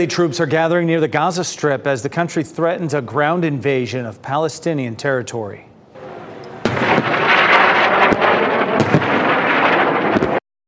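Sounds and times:
speech: 0:00.0 - 0:05.7
explosions of rockets being intercepted over Israel: 0:06.0 - 0:10.4.

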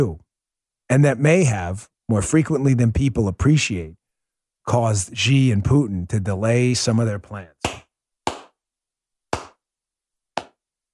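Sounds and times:
speech: 0:00.0 - 0:00.2, 0:00.9 - 0:04.0, 0:04.7 - 0:07.8
golf clap: 0:07.6 - 0:08.6, 0:09.4 - 0:09.6, 0:10.4 - 0:10.6.

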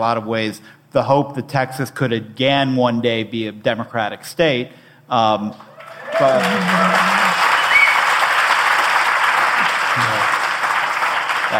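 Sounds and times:
speech: 0:00.0 - 0:07.2
audience applause: 0:05.8 - 0:11.5.

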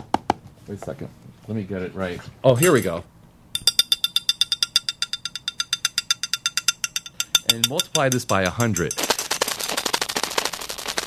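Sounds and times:
speech: 0:00.7 - 0:03.2, 0:07.5 - 0:09.0
recorded neural firing of sleeping cat brain: 0:03.6 - 0:11.0.

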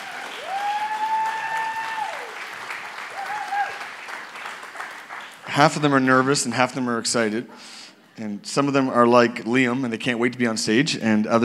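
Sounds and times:
crowd clapping for a panel: 0:00.0 - 0:06.5
speech: 0:05.6 - 0:11.4.

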